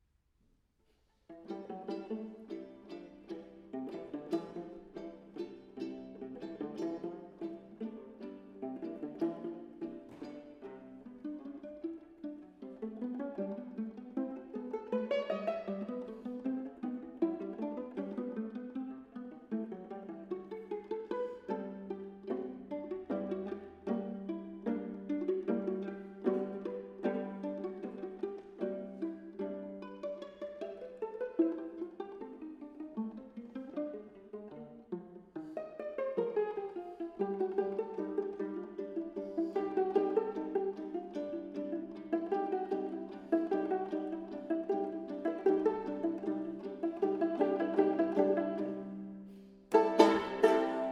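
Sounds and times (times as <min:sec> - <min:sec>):
pizzicato strings duet: 0:00.9 - 0:50.9.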